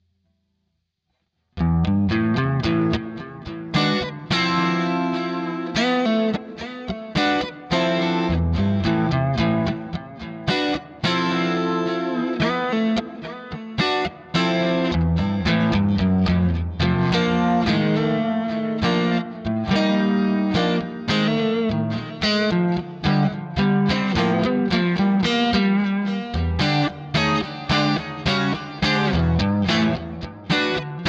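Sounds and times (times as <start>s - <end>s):
lush chorus guitar effect: 1.6s - 31.0s.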